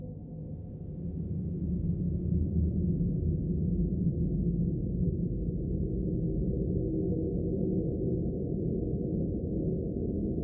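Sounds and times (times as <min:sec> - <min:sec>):
dark atmospheric drone: 0:00.1 - 0:10.4.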